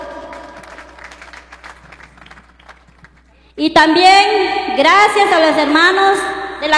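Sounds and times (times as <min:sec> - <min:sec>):
crowd applause: 0:00.0 - 0:03.4
speech: 0:03.6 - 0:06.7.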